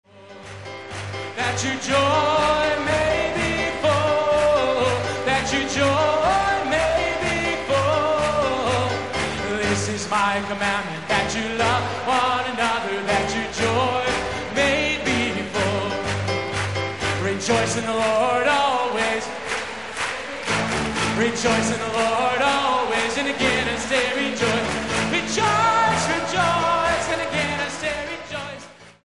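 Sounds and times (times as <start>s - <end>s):
scripture song medley: 0.0s - 29.0s.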